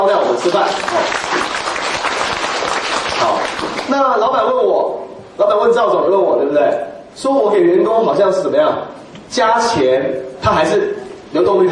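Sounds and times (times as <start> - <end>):
speech: 0.0 - 1.5, 3.2 - 11.6
audience applause: 0.1 - 3.9.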